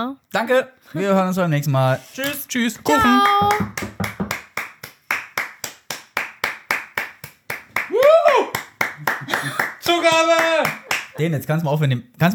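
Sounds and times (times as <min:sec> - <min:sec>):
speech: 0:00.0 - 0:04.0, 0:11.2 - 0:12.3
hand clapping: 0:02.9 - 0:11.2.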